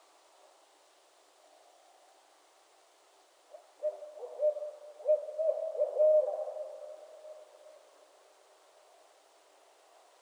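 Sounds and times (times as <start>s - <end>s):
barred owl hooting: 3.8s - 7.5s.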